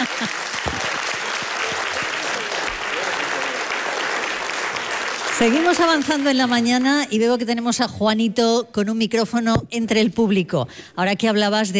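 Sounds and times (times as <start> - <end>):
audience applause: 0.0 - 7.1
speech: 5.4 - 11.7.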